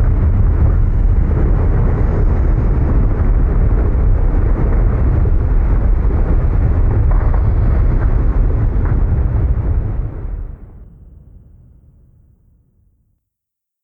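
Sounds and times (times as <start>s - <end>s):
volcano erupting: 0.0s - 10.9s.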